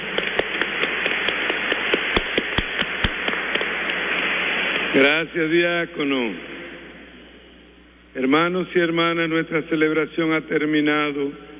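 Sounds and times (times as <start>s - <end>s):
audience applause: 0.0s - 3.7s
speech: 5.0s - 6.6s, 8.2s - 11.5s.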